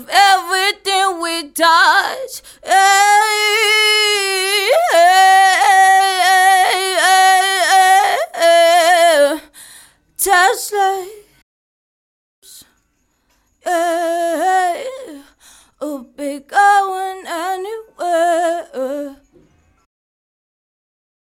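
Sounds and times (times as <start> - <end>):
woman singing pop R and B: 0.0 - 9.5, 10.2 - 11.2, 13.6 - 19.2.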